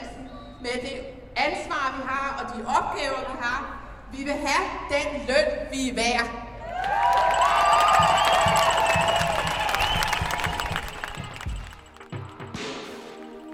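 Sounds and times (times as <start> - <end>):
speech: 0.7 - 8.7
demonstration crowd cheering: 6.6 - 12.6
crowd clapping: 6.7 - 13.5
whistles: 7.2 - 11.9.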